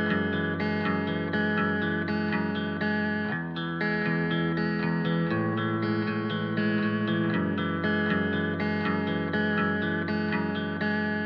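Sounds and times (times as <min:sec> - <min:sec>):
main guitar in E major at 120 BPM: 0:00.0 - 0:11.2.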